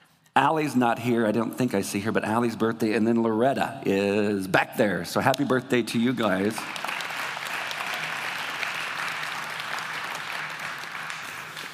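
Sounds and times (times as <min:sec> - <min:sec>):
speech: 0:00.4 - 0:06.8
audience clapping for birthdays: 0:06.2 - 0:11.7.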